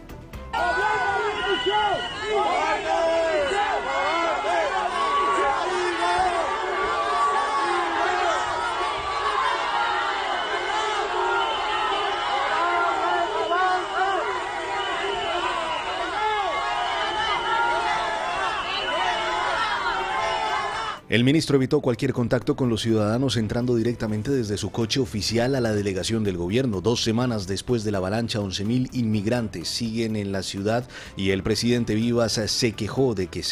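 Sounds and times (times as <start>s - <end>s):
crowd shouting insults and jeering: 0.5s - 21.0s
shrill whistles: 0.6s - 4.0s, 9.9s - 20.8s
speech: 1.6s - 3.0s, 21.1s - 33.5s.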